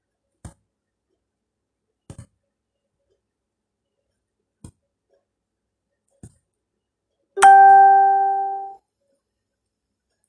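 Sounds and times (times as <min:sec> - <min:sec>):
alarm chime: 0:07.4 - 0:08.8.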